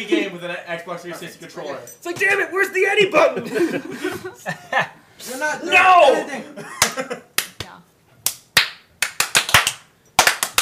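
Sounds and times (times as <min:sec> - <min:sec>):
speech: 0:00.0 - 0:07.3
laughter: 0:03.1 - 0:05.0, 0:06.1 - 0:07.4
several people clapping: 0:06.8 - 0:10.5.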